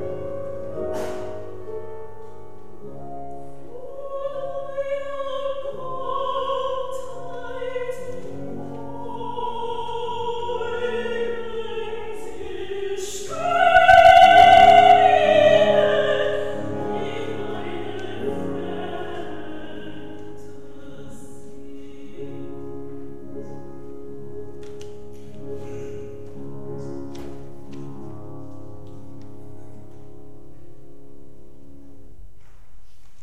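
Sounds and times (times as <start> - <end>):
singing: 3.7 - 22.6.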